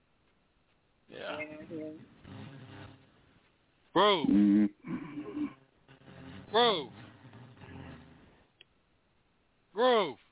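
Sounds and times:
quieter murmuring voices: 1.1s - 2.9s, 4.0s - 5.6s
speech: 1.1s - 3.0s, 4.0s - 4.7s, 6.5s - 7.0s, 9.8s - 10.2s
person snoring: 4.3s - 5.6s.

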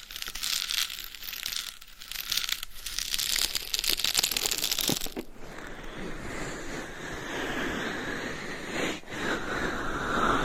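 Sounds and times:
scratching and tapping: 0.0s - 5.3s
smooth massage rubbing hiss: 0.0s - 10.4s.

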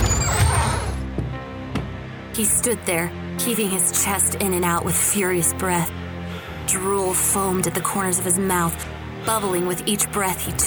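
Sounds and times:
door slamming open: 0.0s - 2.0s
speech: 2.4s - 6.0s, 6.7s - 10.6s.

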